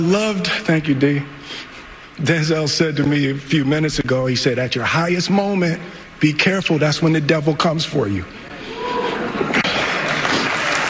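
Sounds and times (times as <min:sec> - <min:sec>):
speech: 0:00.0 - 0:08.4
audience applause: 0:09.0 - 0:10.8.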